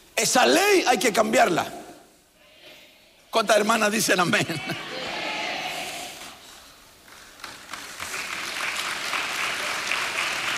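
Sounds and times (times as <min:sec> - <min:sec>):
speech: 0:00.2 - 0:01.8, 0:03.3 - 0:04.9
audience applause: 0:07.1 - 0:10.5.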